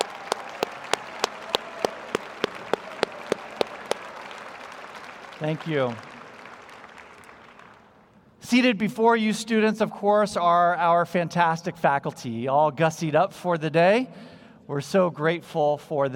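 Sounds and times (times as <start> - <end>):
sharp evenly spaced claps: 0.0 - 7.9
audience applause: 0.0 - 8.0
speech: 5.4 - 6.1, 8.5 - 16.1.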